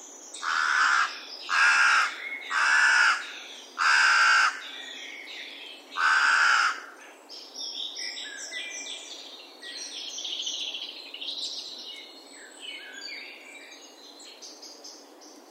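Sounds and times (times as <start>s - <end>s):
carrion crow cawing coarsely: 0.4s - 4.6s, 6.0s - 7.0s.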